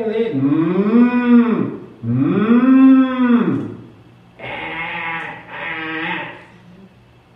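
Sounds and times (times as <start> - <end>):
speech: 0.0 - 0.8
cattle lowing: 0.4 - 3.8, 4.4 - 6.5
sheep bleating: 4.4 - 6.5.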